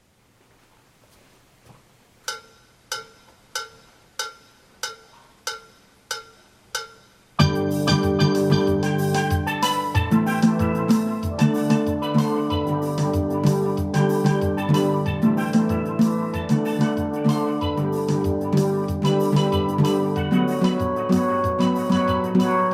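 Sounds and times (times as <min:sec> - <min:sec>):
guitar: 0:07.4 - 0:22.7.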